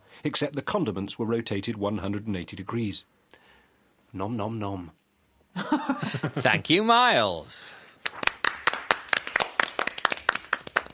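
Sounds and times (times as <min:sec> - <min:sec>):
speech: 0:00.2 - 0:03.2, 0:04.1 - 0:05.0, 0:05.6 - 0:07.8
short thin round of audience applause: 0:08.0 - 0:10.9.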